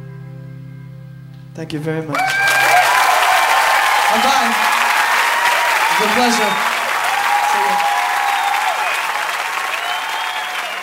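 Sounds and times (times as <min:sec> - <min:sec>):
speech: 0:01.6 - 0:02.5, 0:04.1 - 0:04.8, 0:06.0 - 0:06.7
concert audience applause: 0:02.1 - 0:10.8.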